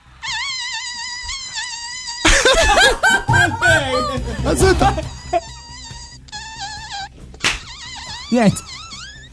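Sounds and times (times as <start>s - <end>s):
voice imitating a buzzing fly: 0.2s - 2.5s, 3.7s - 9.3s
loud laughter: 2.2s - 5.6s
speech: 3.8s - 5.6s, 8.3s - 8.7s.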